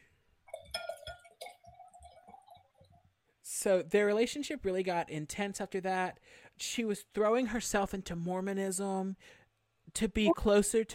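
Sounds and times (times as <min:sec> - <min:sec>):
wine glass being refilled: 0:00.5 - 0:03.0
speech: 0:03.6 - 0:10.9.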